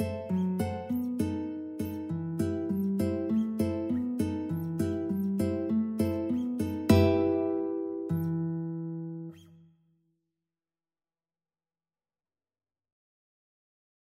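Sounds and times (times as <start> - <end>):
guitar in a studio: 0.0 - 9.8.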